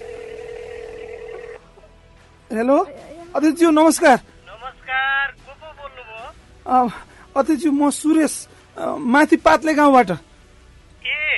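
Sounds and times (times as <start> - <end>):
telephone tone while a number is dialed: 0.0 - 1.6
speech: 2.5 - 4.3, 6.7 - 10.3.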